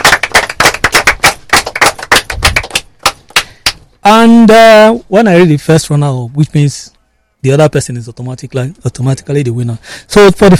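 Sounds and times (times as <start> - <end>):
applause: 0.0 - 3.8
speech: 4.2 - 10.5.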